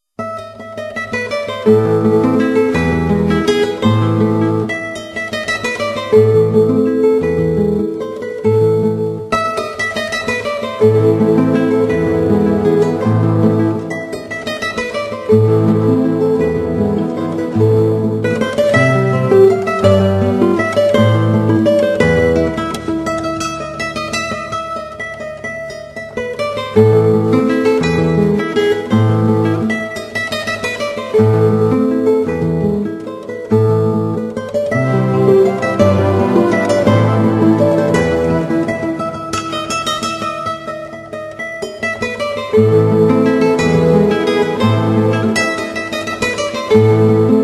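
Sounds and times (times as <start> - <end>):
instrumental guitar without vocals: 0.2 - 47.4.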